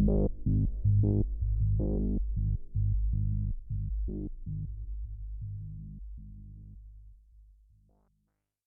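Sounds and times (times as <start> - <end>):
synthesizer LFO modulating the VCF: 0.0 - 6.8.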